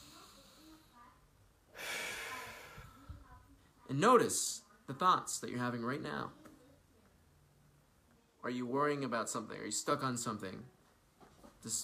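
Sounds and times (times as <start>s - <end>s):
deep breath in during a guided mindfulness session: 1.7s - 3.2s
speech: 3.9s - 6.4s, 8.4s - 10.8s, 11.6s - 11.8s.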